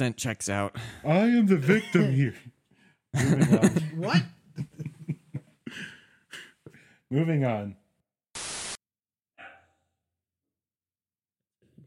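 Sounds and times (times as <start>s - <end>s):
speech: 0.0s - 4.9s, 7.1s - 7.8s
laughter: 3.2s - 5.8s
microphone static hiss: 8.4s - 8.8s.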